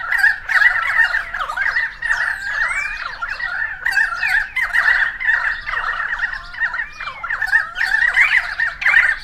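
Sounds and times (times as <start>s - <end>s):
currawongs squawking and gurgling in chorus: 0.0s - 9.2s.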